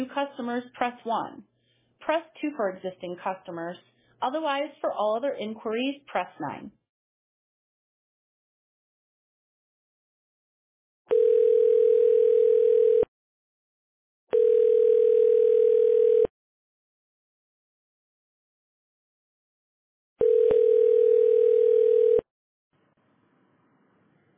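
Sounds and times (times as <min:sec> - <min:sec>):
speech: 0:00.1 - 0:06.8
telephone ring tones during a test call: 0:11.1 - 0:13.1, 0:14.3 - 0:16.3, 0:20.2 - 0:22.2.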